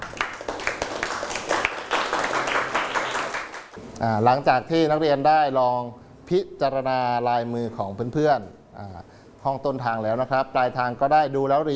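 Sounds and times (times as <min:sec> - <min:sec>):
classroom group applauding: 0:00.0 - 0:03.8
speech: 0:04.0 - 0:11.7.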